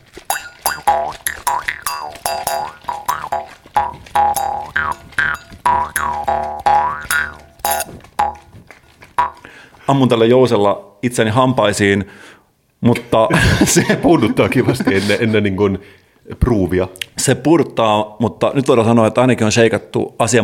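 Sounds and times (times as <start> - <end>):
jaw harp playing a bouncy jingle: 0.3 - 8.6, 9.2 - 9.5
speech: 0.9 - 1.2, 9.9 - 20.4
laughter: 13.3 - 15.5.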